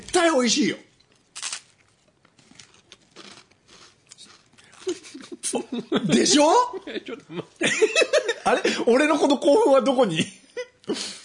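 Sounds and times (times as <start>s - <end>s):
speech: 0.2s - 0.9s, 5.7s - 11.1s
crunching and chewing of salad rice crackers with vanilla ice cream: 1.0s - 5.2s
laughter: 4.9s - 9.0s.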